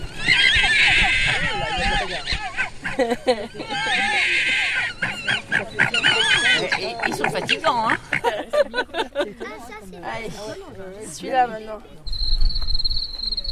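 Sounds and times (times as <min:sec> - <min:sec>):
red fox cubs whining and squealing in the den: 0:00.0 - 0:03.0, 0:03.6 - 0:07.7
laughter: 0:00.7 - 0:10.8
speech: 0:03.0 - 0:04.4, 0:06.8 - 0:08.4, 0:09.2 - 0:12.1.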